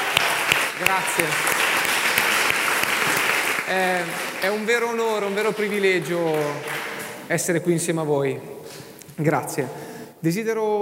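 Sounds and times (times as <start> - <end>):
audience applause: 0.0 - 7.6
speech: 0.8 - 1.7, 3.7 - 8.5, 9.2 - 10.8.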